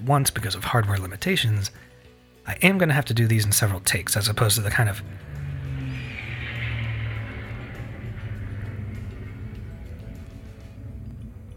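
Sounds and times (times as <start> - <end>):
speech: 0.0 - 5.4
airplane passing overhead: 3.4 - 11.5.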